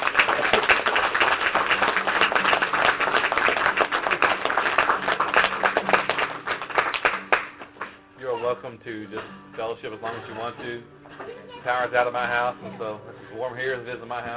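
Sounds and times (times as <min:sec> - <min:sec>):
crowd hand clapping in praise: 0:00.0 - 0:08.1
speech: 0:08.6 - 0:14.3.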